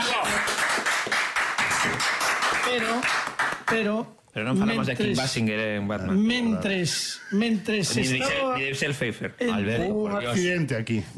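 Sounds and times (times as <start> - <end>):
audience applause: 0.0 - 3.7
speech: 2.7 - 11.1.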